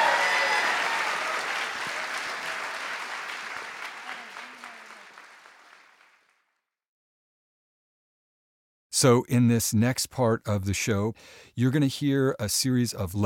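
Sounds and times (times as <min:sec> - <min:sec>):
audience applause: 0:00.0 - 0:06.3
speech: 0:09.0 - 0:13.2.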